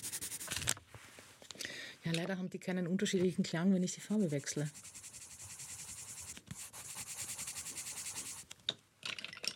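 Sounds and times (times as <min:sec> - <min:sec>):
drawing tool scratching while drawing a female figure by hand: 0:00.0 - 0:00.6, 0:04.1 - 0:08.5
speech: 0:02.0 - 0:04.9.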